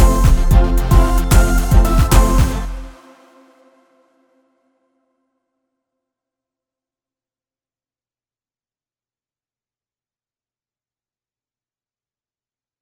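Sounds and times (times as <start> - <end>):
party riddim instrumental: 0.0 - 3.0.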